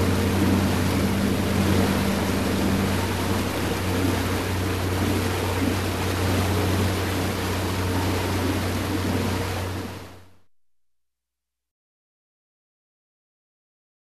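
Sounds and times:
motorboat moving with engine noise: 0.0s - 10.4s.

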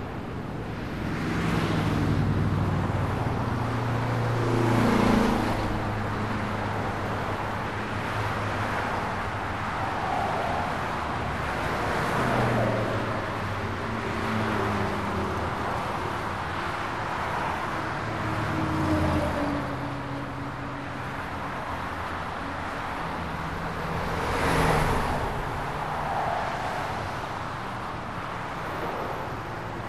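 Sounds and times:
hum of highway: 0.0s - 29.8s.

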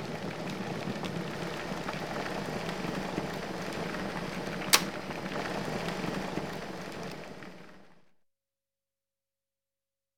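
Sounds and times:
electric kettle boiling: 0.0s - 8.0s.

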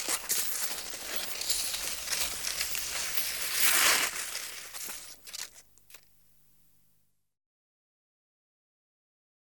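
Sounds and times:
cross-country skis and ski poles: 0.0s - 6.2s.

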